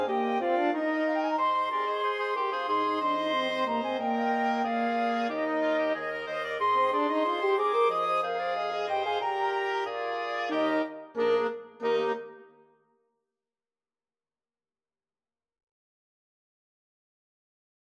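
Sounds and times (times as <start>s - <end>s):
Christmas carol: 0.0s - 12.4s.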